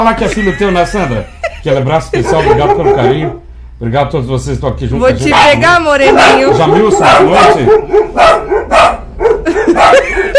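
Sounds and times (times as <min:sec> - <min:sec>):
laughter: 0:00.0 - 0:03.1, 0:09.4 - 0:10.3
speech: 0:00.0 - 0:09.0
dogs barking: 0:02.2 - 0:03.5, 0:05.2 - 0:10.3.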